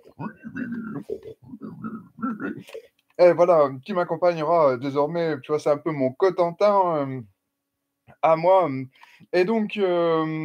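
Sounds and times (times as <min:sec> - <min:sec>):
person imitating a pig with nasal oinks and throaty grunts: 0:00.0 - 0:02.8
speech: 0:00.2 - 0:07.3, 0:08.2 - 0:10.4.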